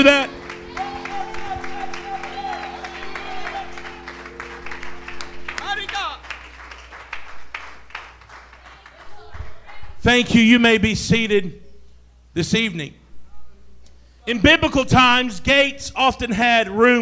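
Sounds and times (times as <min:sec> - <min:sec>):
speech: 0:00.0 - 0:00.4, 0:10.0 - 0:11.6, 0:12.4 - 0:13.0, 0:14.3 - 0:16.9
sustained musical chord: 0:00.0 - 0:07.7
audience applause: 0:00.0 - 0:10.0.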